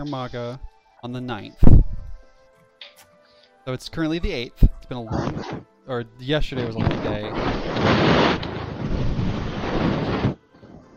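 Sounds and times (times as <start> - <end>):
speech: 0.0 - 1.9, 3.6 - 8.2
cat fur rubbing against a microphone: 6.8 - 10.4.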